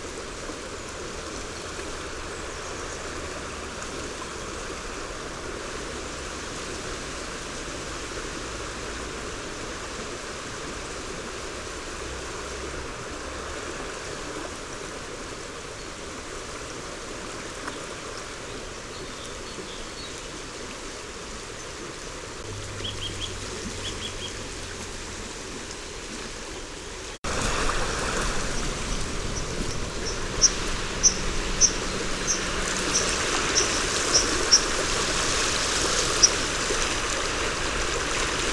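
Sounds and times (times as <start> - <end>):
river: 0.0 - 38.5
dipper: 28.6 - 34.7.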